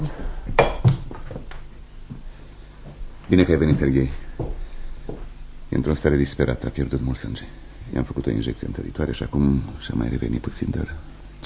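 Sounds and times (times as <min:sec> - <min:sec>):
glassware clinking as a glass is poured: 0:00.6 - 0:01.1
speech: 0:03.3 - 0:04.2, 0:05.9 - 0:11.4.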